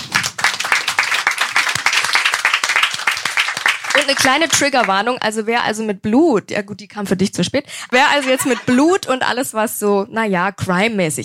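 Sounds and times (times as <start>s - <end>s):
live audience applause: 0.0s - 5.0s
speech: 4.0s - 11.2s
laughter: 7.9s - 9.1s.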